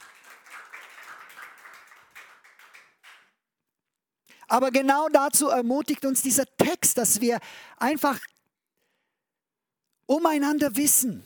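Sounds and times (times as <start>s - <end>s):
audience clapping: 0.0s - 3.5s
speech: 4.5s - 8.3s, 10.2s - 11.2s.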